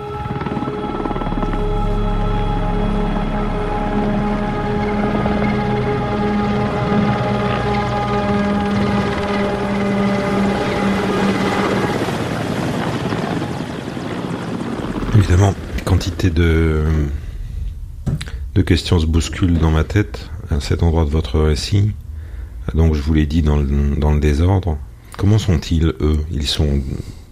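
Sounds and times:
helicopter on a medical evacuation flight flying overhead: 0.0s - 16.6s
speech: 16.2s - 17.2s, 18.6s - 22.0s, 22.7s - 27.1s.

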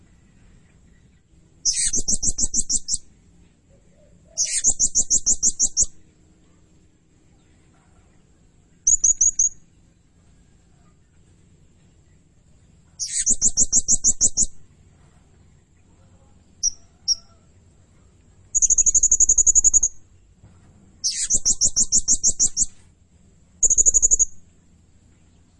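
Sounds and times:
blue-crowned hanging parrot giving shrill high chirps: 1.6s - 3.1s, 4.4s - 6.0s, 8.8s - 9.6s, 13.0s - 14.6s, 16.6s - 17.4s, 18.5s - 20.0s, 21.0s - 22.8s, 23.6s - 24.4s.

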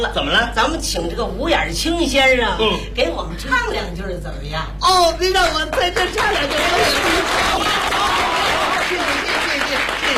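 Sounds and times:
speech: 0.0s - 8.2s
audience applause: 6.0s - 10.1s.

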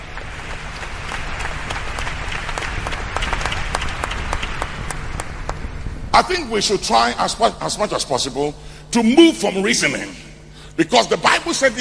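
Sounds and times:
audience applause at a religious sermon: 0.0s - 5.8s
speech: 6.2s - 10.2s, 10.8s - 11.7s.

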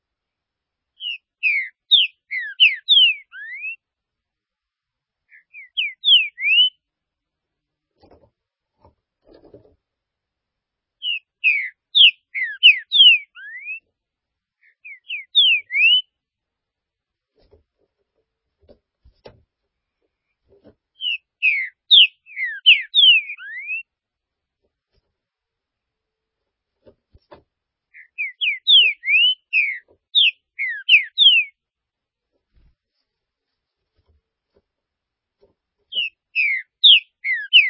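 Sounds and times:
green-winged saltator song: 1.0s - 3.8s, 5.3s - 6.8s, 11.0s - 13.8s, 14.8s - 16.1s, 21.0s - 23.8s, 28.0s - 31.6s, 36.0s - 37.6s.

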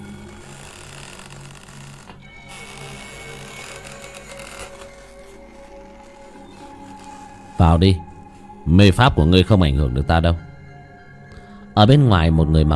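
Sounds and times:
old door slowly creaking open: 0.0s - 8.6s
speech: 7.6s - 8.1s, 8.7s - 10.5s, 11.8s - 12.7s.

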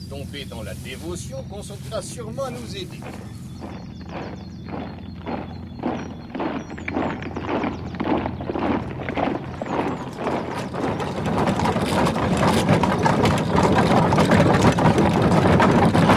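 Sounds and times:
low rumbling: 0.0s - 16.1s
speech: 0.1s - 4.5s
horse hooves galloping: 1.7s - 16.1s
faint high chirping: 2.5s - 9.0s.

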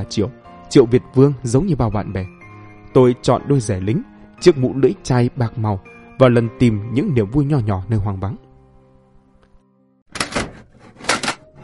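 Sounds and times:
speech: 0.0s - 8.4s
something banging against a hut door: 10.1s - 11.4s.

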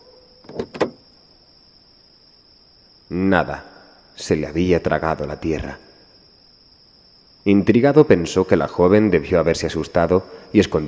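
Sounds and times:
car door opening as someone gets out: 0.4s - 1.0s
speech: 3.1s - 5.9s, 7.4s - 10.8s.

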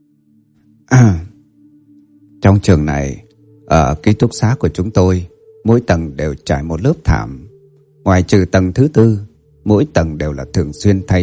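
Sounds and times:
throat clearing: 0.9s - 1.4s
speech: 2.5s - 11.2s.

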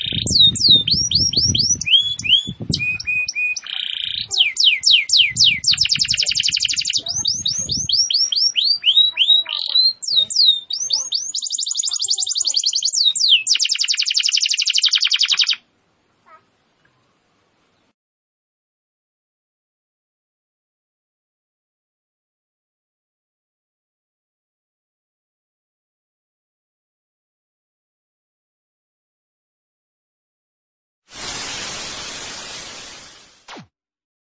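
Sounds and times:
canary singing vigorously: 0.0s - 15.6s.

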